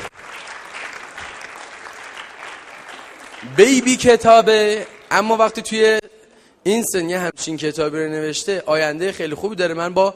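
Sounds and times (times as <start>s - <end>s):
crowd applause welcoming a young author onto the stage: 0.0s - 4.2s
speech: 3.4s - 6.0s, 6.6s - 10.1s.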